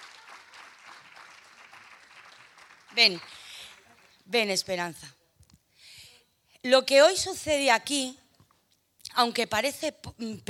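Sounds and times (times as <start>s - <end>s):
audience applause: 0.0s - 4.2s
speech: 3.0s - 3.3s, 4.3s - 5.2s, 6.6s - 8.2s, 9.2s - 10.4s.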